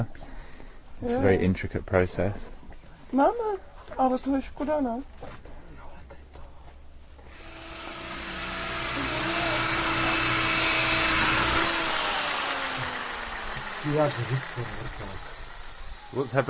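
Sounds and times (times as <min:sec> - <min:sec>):
speech: 0:01.0 - 0:05.5, 0:13.8 - 0:15.3, 0:16.1 - 0:16.4
power drill drilling holes into wood: 0:07.3 - 0:16.4.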